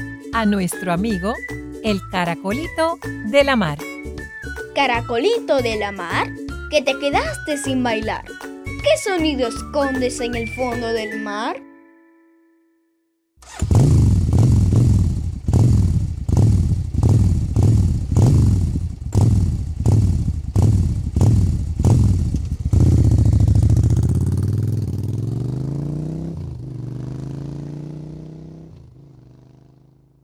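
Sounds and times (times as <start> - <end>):
speech: 0.4 - 3.9, 4.8 - 11.7
motorcycle engine revving: 13.4 - 30.2.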